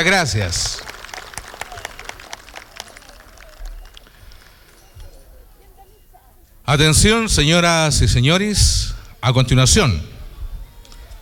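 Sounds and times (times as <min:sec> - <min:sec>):
speech: 0:00.0 - 0:00.9, 0:06.7 - 0:10.1
audience applause: 0:00.0 - 0:04.9.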